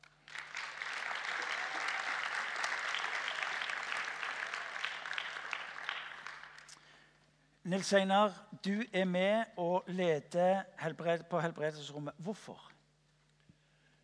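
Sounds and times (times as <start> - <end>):
crowd clapping: 0.0 - 6.9
speech: 7.7 - 12.7.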